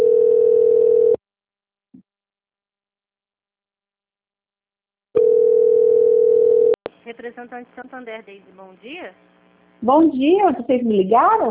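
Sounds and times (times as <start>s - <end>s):
telephone call ringing tone: 0.0s - 1.2s, 5.2s - 6.8s
speech: 7.3s - 11.4s.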